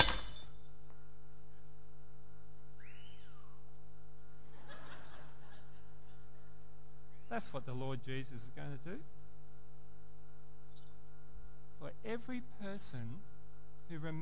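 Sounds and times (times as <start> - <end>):
faint tinkling pottery fragments: 0.0 - 0.5
piece of pottery smashing: 0.0 - 0.5
steady low hum: 0.0 - 14.2
laughter: 4.4 - 6.5
speech: 7.4 - 9.2, 11.8 - 13.3, 13.9 - 14.2.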